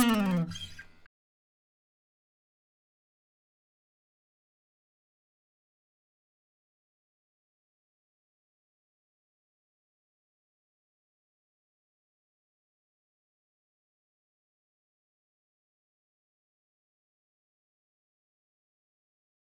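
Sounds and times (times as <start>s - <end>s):
guitar: 0.0s - 1.0s.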